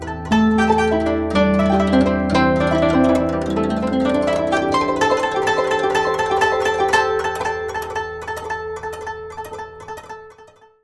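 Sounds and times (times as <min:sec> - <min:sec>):
guqin playing in C: 0:00.0 - 0:10.8.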